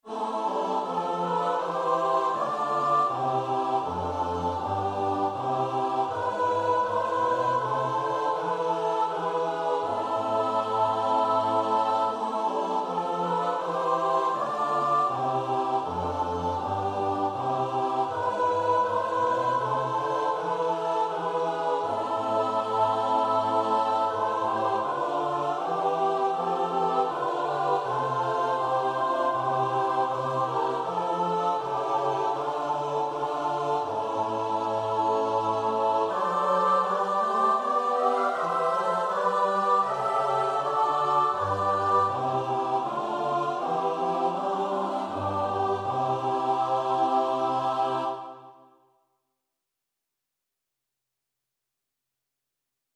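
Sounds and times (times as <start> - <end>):
soprano alto tenor bass choir: 0.0 - 49.0.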